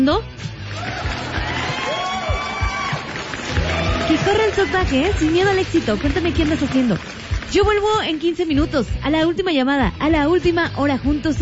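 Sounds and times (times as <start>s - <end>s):
speech: 0.0s - 2.1s, 4.1s - 11.4s
applause: 0.5s - 8.4s.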